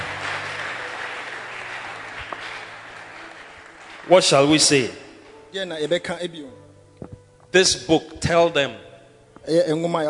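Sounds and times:
church congregation clapping: 0:00.0 - 0:05.2
speech: 0:04.1 - 0:06.6, 0:07.5 - 0:08.8, 0:09.4 - 0:10.0.

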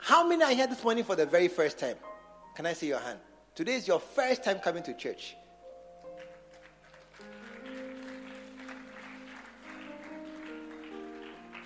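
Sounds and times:
speech: 0:00.2 - 0:05.4
audience clapping: 0:06.1 - 0:11.6.

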